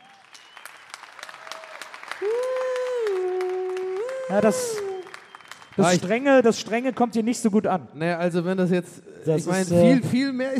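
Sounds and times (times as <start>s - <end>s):
audience applause: 0.0s - 7.0s
speech: 4.3s - 4.9s, 5.8s - 10.5s.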